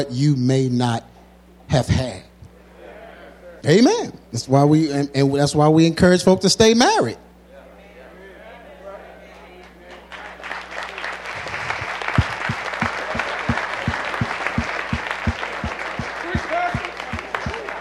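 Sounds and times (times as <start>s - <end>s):
speech: 0.0s - 1.1s, 1.7s - 2.3s, 3.6s - 7.2s
room full of people applauding: 9.9s - 17.7s
regular low thumping beat: 11.5s - 17.7s.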